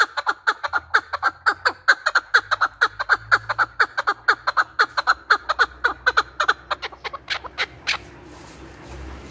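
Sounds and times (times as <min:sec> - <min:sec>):
male chukar partridge call: 0:00.0 - 0:08.1.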